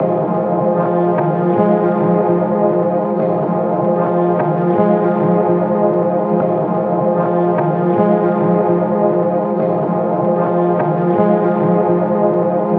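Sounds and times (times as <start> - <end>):
synth pad loop: 0.0 - 12.7.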